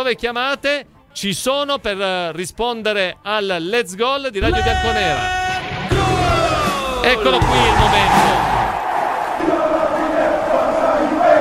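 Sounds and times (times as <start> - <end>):
speech: 0.0 - 5.4, 7.0 - 8.6
large stadium crowd chanting and roaring: 4.4 - 11.3.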